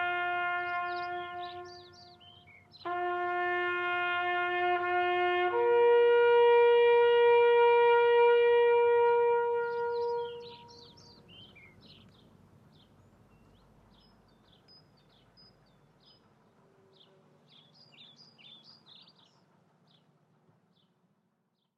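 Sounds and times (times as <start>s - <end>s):
bugle call by a drum and bugle corps: 0.0s - 11.0s.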